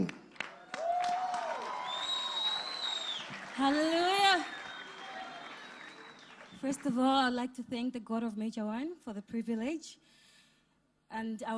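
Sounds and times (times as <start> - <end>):
church congregation applause welcoming a performer at a live service: 0.0 - 6.8
speech: 3.6 - 4.0, 6.6 - 10.2, 11.1 - 11.5.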